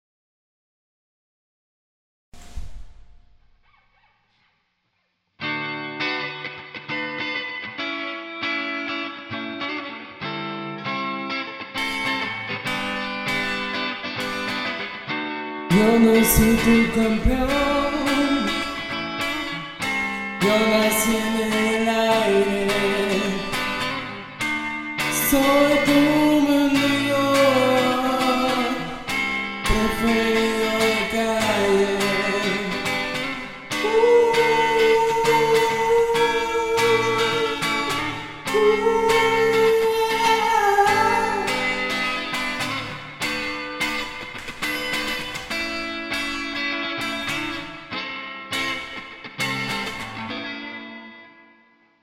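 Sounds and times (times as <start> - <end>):
guitar: 2.4 - 4.6, 5.4 - 52.0
person singing: 15.7 - 19.6, 20.4 - 24.3, 25.0 - 42.8.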